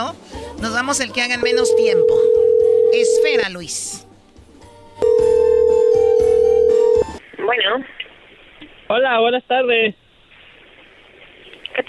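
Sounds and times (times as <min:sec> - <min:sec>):
speech: 0:00.0 - 0:04.1, 0:07.6 - 0:08.0, 0:08.9 - 0:10.0
telephone ring tone as a call is dialed: 0:01.4 - 0:03.4, 0:05.0 - 0:07.2.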